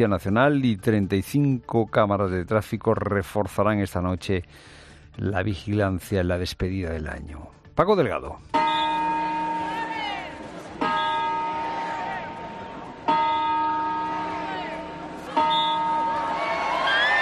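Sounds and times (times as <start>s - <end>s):
speech: 0.0s - 8.6s
New Year's Eve clock bell chimes at Puerta del Sol: 8.6s - 10.2s, 10.8s - 12.4s, 13.0s - 16.6s
faint crowd murmur: 9.6s - 17.2s.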